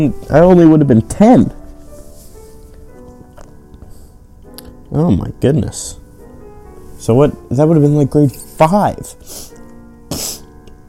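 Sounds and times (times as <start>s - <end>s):
speech: 0.0s - 1.6s, 4.9s - 6.0s, 7.0s - 9.5s
person sniffling: 9.2s - 10.5s.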